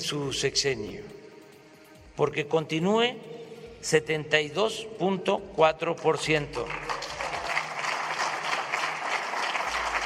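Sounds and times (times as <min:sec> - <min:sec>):
speech: 0:00.0 - 0:01.2, 0:02.2 - 0:06.9
reporters clapping: 0:06.5 - 0:10.0.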